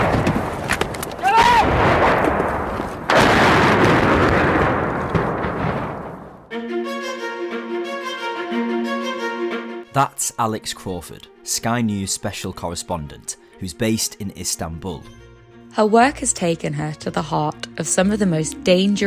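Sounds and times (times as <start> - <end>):
Russian shelling blasts striking an escape route from Chernihiv: 0.0 - 6.5
music: 6.5 - 19.0
speech: 10.0 - 19.0.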